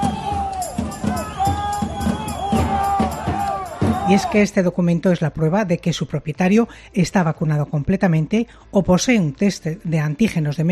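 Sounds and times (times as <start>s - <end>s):
protest crowd chanting: 0.0s - 4.4s
speech: 4.1s - 10.6s.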